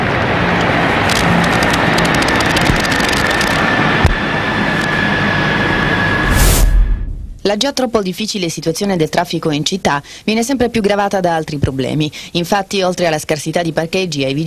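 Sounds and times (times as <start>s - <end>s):
military helicopters flying overhead: 0.0s - 6.2s
speech: 7.4s - 14.4s.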